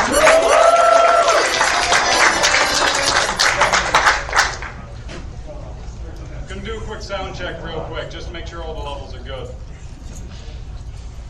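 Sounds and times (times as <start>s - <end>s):
vocal whoop: 0.0s - 2.2s
audience applause: 0.0s - 4.9s.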